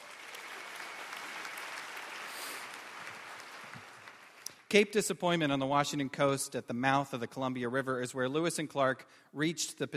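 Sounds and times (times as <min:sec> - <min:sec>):
audience applause: 0:00.0 - 0:04.6
speech: 0:04.7 - 0:09.9.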